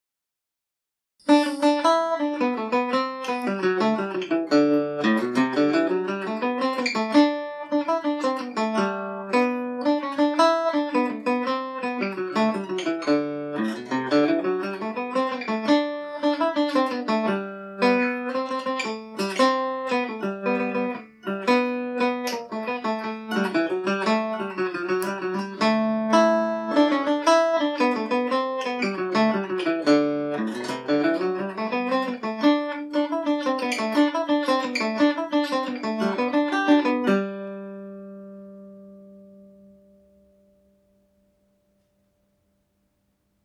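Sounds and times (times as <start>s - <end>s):
mandolin playing in G major: 1.2s - 41.4s.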